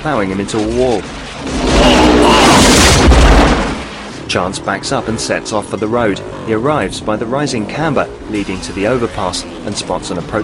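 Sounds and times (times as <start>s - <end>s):
speech: 0.0s - 2.8s, 4.3s - 10.4s
enemy motorbike exploding on a road: 0.7s - 4.4s.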